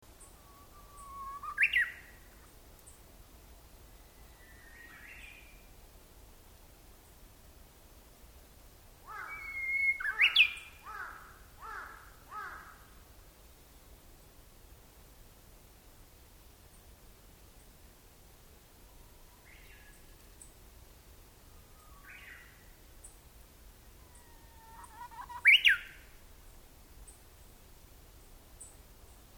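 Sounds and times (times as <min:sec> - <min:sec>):
uguisu: 0:00.1 - 0:03.1, 0:03.9 - 0:05.7, 0:09.1 - 0:12.9, 0:18.8 - 0:20.8, 0:21.4 - 0:29.3.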